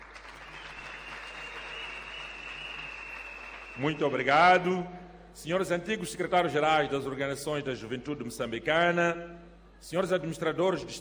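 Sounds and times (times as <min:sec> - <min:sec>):
audience applause: 0:00.0 - 0:04.1
speech: 0:03.8 - 0:10.9.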